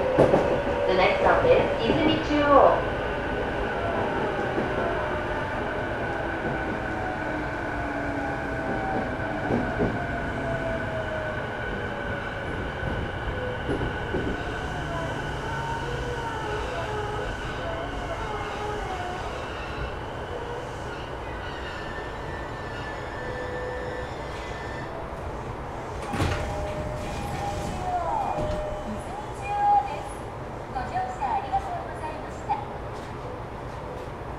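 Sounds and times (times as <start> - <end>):
Sotetsu 12000 series train: 0.0 - 34.3.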